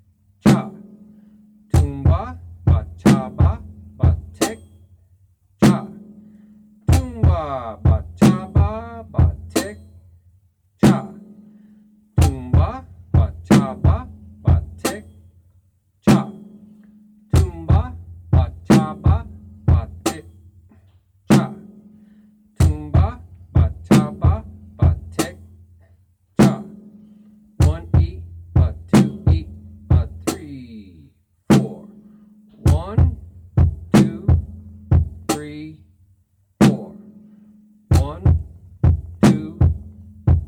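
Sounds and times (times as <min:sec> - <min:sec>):
drum beat: 0:01.8 - 0:04.8, 0:05.6 - 0:06.0, 0:06.9 - 0:10.0, 0:12.2 - 0:15.2, 0:17.4 - 0:20.4, 0:22.6 - 0:25.5, 0:26.4 - 0:26.8, 0:27.6 - 0:30.8, 0:31.5 - 0:31.9, 0:32.5 - 0:35.8, 0:36.6 - 0:37.0, 0:37.9 - 0:40.4.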